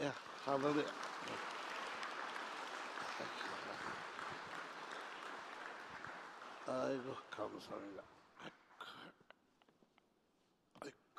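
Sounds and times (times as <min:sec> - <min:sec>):
speech: 0:00.0 - 0:01.5, 0:06.7 - 0:08.6
audience applause: 0:00.0 - 0:07.9.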